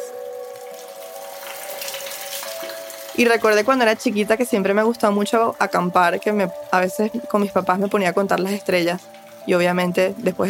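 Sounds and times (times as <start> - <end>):
constant dripping water in glacier ice cave: 0.0 - 10.4
speech: 3.2 - 10.4.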